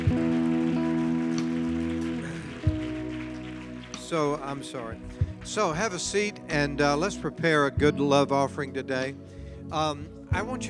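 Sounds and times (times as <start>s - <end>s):
audience applause: 0.0s - 6.6s
speech: 4.1s - 10.6s.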